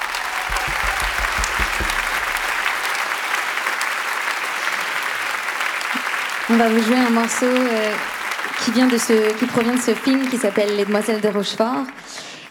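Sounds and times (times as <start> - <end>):
low thumps: 0.0 - 2.8
concert audience clapping for a synthesizer musician: 0.0 - 12.4
speech: 6.5 - 12.4.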